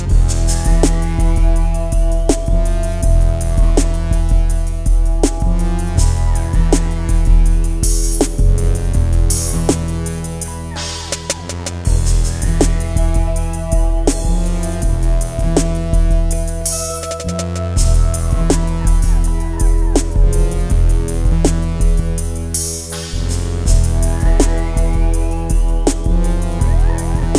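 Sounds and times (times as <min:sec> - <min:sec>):
hip-hop music: 0:00.0 - 0:27.3.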